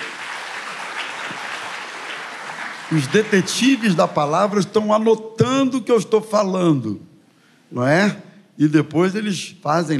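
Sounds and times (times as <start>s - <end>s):
audience applause: 0.0s - 4.2s
speech: 2.9s - 7.1s, 7.7s - 9.9s.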